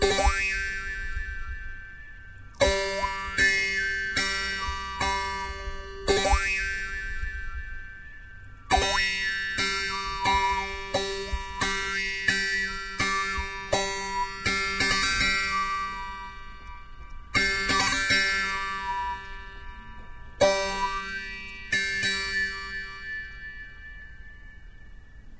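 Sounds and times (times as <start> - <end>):
jew's harp vargan playing: 0.0 - 25.3.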